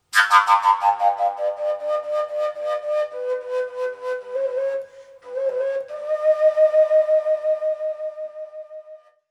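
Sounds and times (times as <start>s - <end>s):
fujara: 0.1s - 9.2s.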